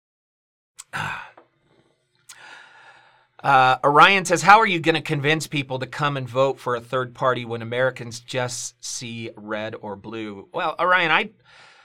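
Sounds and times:
person coughing: 0.8s - 1.4s
speech: 3.4s - 11.7s.

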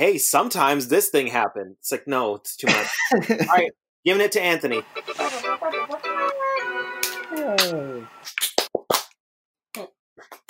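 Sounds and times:
speech: 0.0s - 8.4s, 9.8s - 10.4s
person singing a short melody: 4.7s - 8.1s
rhythmic hand clapping: 5.7s - 9.1s.

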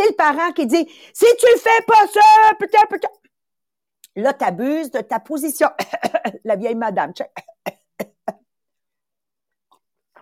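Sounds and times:
speech: 0.1s - 3.2s, 4.2s - 8.1s
small coughs: 5.8s - 6.4s, 7.4s - 8.5s.

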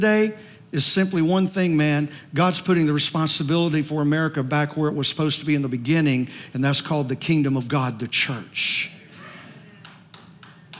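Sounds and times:
speech: 0.0s - 9.0s
hand claps: 9.8s - 10.7s.

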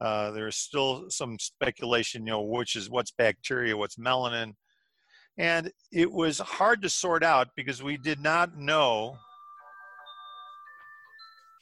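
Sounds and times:
speech: 0.0s - 4.6s, 5.4s - 9.3s
phone ringing with incoming call: 8.8s - 11.6s.

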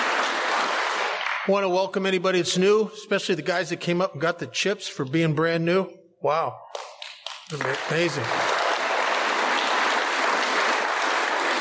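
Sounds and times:
audience applause: 0.0s - 1.5s, 6.7s - 11.5s
speech: 1.5s - 6.7s, 7.5s - 8.6s.

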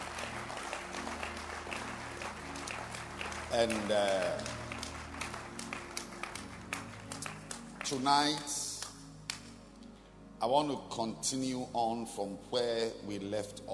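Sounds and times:
audience clapping: 0.0s - 9.6s
speech: 3.5s - 4.6s, 7.9s - 8.6s, 10.4s - 13.7s.

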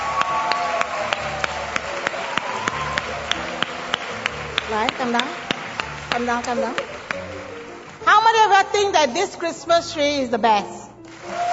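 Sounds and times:
audience clapping: 0.0s - 8.2s, 11.0s - 11.5s
speech: 4.7s - 5.4s, 6.1s - 6.9s, 8.3s - 10.8s.

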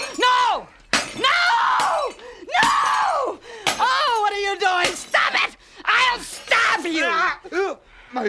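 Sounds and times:
ceramic Egyptian cat statues being smashed: 0.0s - 7.0s.

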